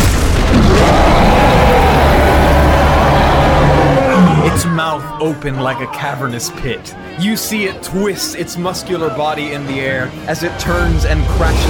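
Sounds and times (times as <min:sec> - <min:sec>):
giant worm bursting out of sand, roaring rumble: 0:00.1 - 0:04.6
speech: 0:05.2 - 0:11.6.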